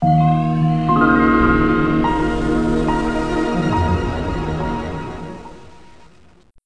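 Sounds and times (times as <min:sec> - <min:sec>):
Windows startup sound: 0:00.9 - 0:05.9.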